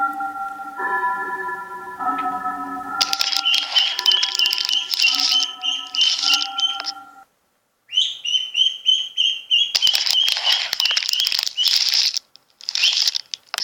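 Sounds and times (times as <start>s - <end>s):
sustained musical tones: 0.0s - 7.3s
large egg shell crackling as a duckling hatches: 3.0s - 7.0s, 9.7s - 13.6s
grey duckling chick peeping: 3.1s - 7.2s, 7.9s - 11.8s.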